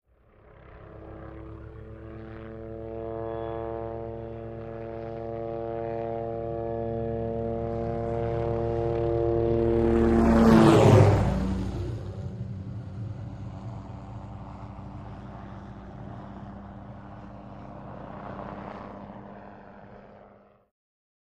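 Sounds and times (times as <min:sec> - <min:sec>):
OH-6 Loach helicopter flying in, by and away: 0:00.1 - 0:20.7.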